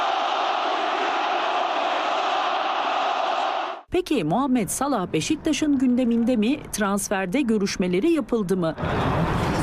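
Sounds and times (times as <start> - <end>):
Beşiktaş football fans chanting for Mohamed Salah at Trossard's signing ceremony: 0.0 - 3.9
speech: 3.9 - 9.5.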